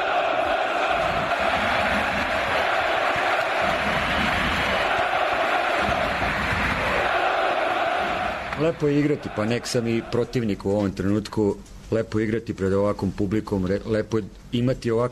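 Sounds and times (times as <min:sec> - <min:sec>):
crowd in an indoor arena cheering and chanting an ovation: 0:00.0 - 0:10.5
speech: 0:08.6 - 0:15.1.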